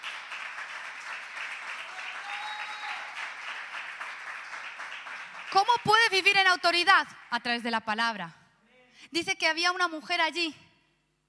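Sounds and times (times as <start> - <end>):
audience applauding: 0.0 - 7.4
speech: 5.5 - 8.4, 9.1 - 10.6.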